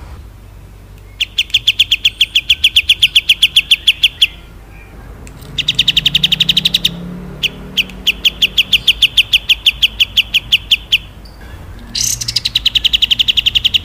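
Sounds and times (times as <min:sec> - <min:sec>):
cotton bird singing with long melodious chirps: 0:00.4 - 0:13.8.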